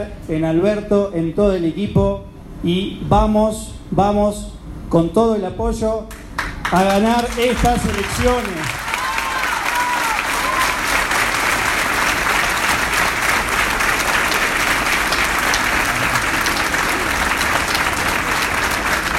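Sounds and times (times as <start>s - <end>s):
speech: 0.0s - 8.8s
audience applause: 6.4s - 19.1s.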